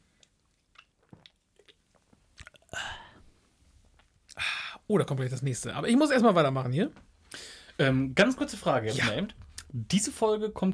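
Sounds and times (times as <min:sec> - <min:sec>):
person sipping and gulping beer: 0:00.1 - 0:04.6
speech: 0:04.9 - 0:07.1, 0:07.8 - 0:10.7.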